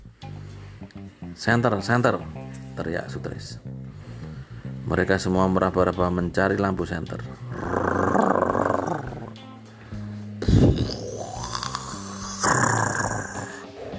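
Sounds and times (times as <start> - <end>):
speech: 1.4 - 3.6, 4.9 - 7.8
deep rough growling: 7.4 - 9.4, 10.4 - 13.9.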